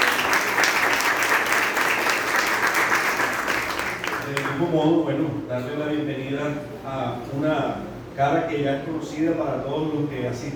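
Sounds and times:
audience applause: 0.0 - 4.6
speech: 4.7 - 10.5.

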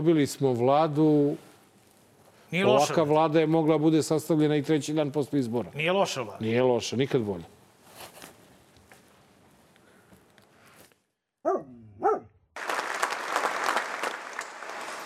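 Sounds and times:
speech: 0.0 - 1.5, 2.5 - 7.6
tonal bark-like yelps: 11.4 - 12.3
audience applause at a political discussion: 12.6 - 15.0.

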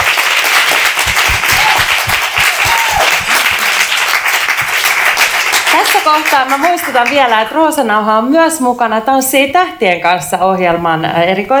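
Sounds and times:
audience applause: 0.0 - 7.3
speech: 6.1 - 11.5.

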